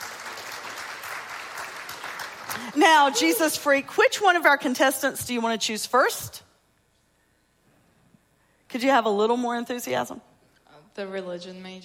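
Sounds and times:
game show studio audience applause welcoming a contestant: 0.0s - 3.4s
speech: 2.6s - 6.5s, 8.7s - 10.3s, 11.0s - 11.8s.

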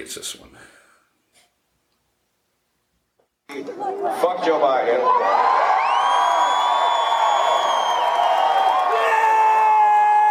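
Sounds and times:
speech: 0.0s - 0.8s, 3.5s - 5.8s
concert crowd cheering: 3.9s - 10.2s.

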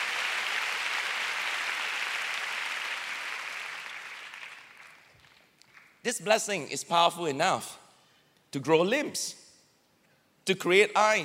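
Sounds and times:
audience clapping: 0.0s - 6.0s
speech: 6.0s - 7.8s, 8.5s - 9.4s, 10.4s - 11.2s.

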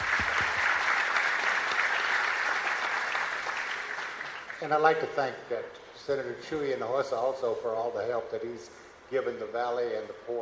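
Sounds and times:
audience applause: 0.0s - 4.6s
speech: 4.6s - 10.4s.

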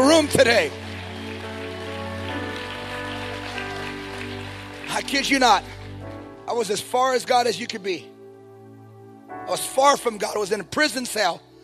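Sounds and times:
audience clapping: 0.0s - 6.2s
speech: 0.2s - 0.8s, 5.0s - 5.8s, 6.5s - 8.1s, 9.5s - 11.5s.

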